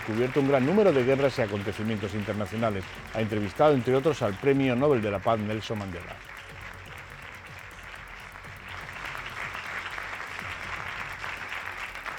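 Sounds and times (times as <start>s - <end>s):
speech: 0.0s - 6.3s
standing audience applause: 0.0s - 12.1s.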